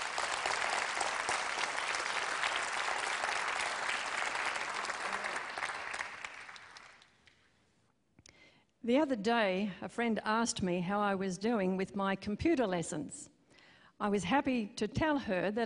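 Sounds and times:
audience applause welcoming a speaker's wife: 0:00.0 - 0:07.5
speech: 0:08.9 - 0:13.3, 0:14.0 - 0:15.6.

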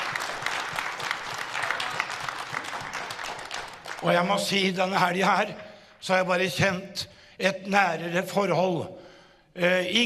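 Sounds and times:
audience clapping: 0:00.0 - 0:05.8
speech: 0:04.0 - 0:09.0, 0:09.6 - 0:10.0.

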